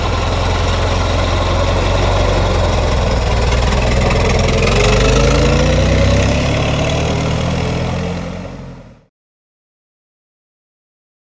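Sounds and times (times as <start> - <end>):
Model T Ford engine starting, idling and driving away: 0.0 - 7.9.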